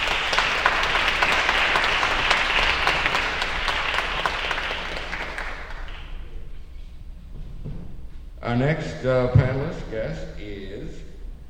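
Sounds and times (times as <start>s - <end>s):
audience applause: 0.0s - 6.6s
speech: 8.5s - 11.1s.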